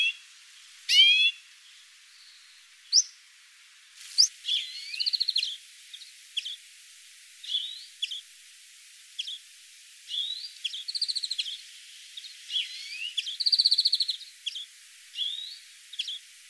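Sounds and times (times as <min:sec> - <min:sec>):
European greenfinch buzzy and curling whistled calls: 0:00.0 - 0:00.2, 0:00.9 - 0:03.2, 0:04.0 - 0:06.6, 0:07.4 - 0:08.3, 0:09.2 - 0:09.4, 0:10.1 - 0:16.4.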